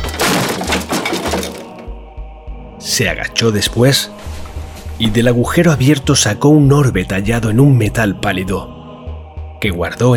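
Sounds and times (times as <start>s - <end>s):
wooden floorboards smashed by a greatsword blow: 0.0s - 1.9s
speech: 2.9s - 4.3s, 5.0s - 8.8s, 9.6s - 10.1s.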